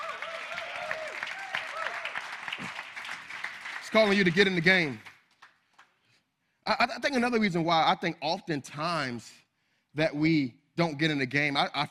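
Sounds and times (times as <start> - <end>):
audience clapping: 0.0 - 6.0
speech: 3.9 - 5.1, 6.7 - 9.4, 10.0 - 11.8.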